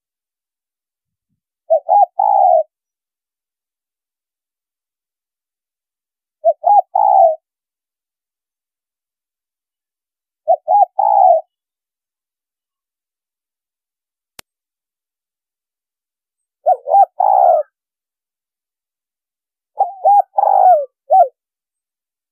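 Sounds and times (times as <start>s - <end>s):
spotted dove coos: 1.7s - 2.7s, 6.4s - 7.4s, 10.5s - 11.6s, 16.6s - 17.8s, 19.8s - 21.4s.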